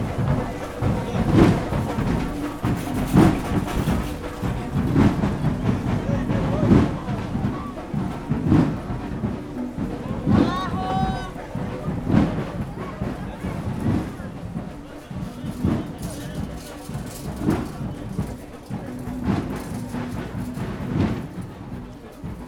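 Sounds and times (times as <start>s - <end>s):
band playing during a walk at a fair: 0.0s - 22.4s.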